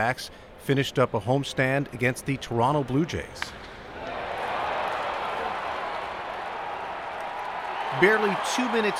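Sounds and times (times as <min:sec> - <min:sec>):
speech: 0:00.0 - 0:03.7, 0:07.9 - 0:08.9
fans of the visiting Blue Jays cheering a home run: 0:03.8 - 0:08.9.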